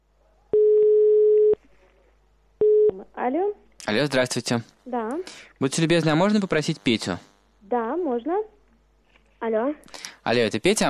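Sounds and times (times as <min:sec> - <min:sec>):
telephone ringback tone as an outgoing call is placed: 0:00.6 - 0:01.6
speech: 0:03.2 - 0:08.6, 0:09.4 - 0:10.8.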